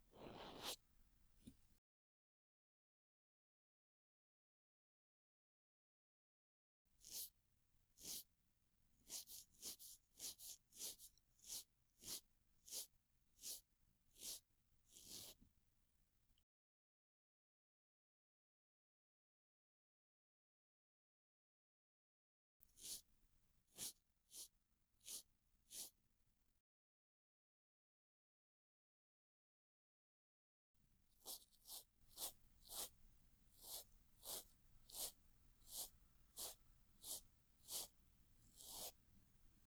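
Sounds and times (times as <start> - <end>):
cotton swab brushing ear rim and earlobe on left side: 0.1 - 0.8, 7.0 - 7.3, 8.0 - 8.2, 9.0 - 13.6, 14.2 - 15.4, 22.8 - 23.0, 23.8 - 25.9, 31.2 - 39.0.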